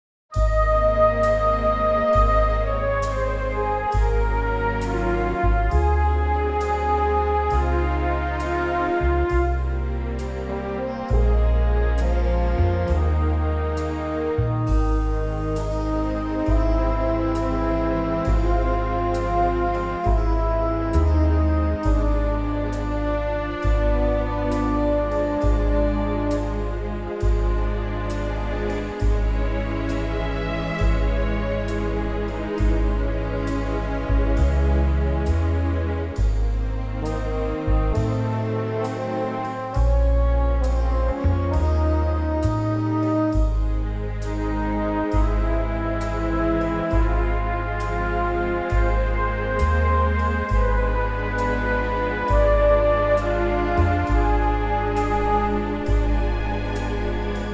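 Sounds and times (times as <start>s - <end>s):
orchestra chord in A flat: 0.4s - 57.5s.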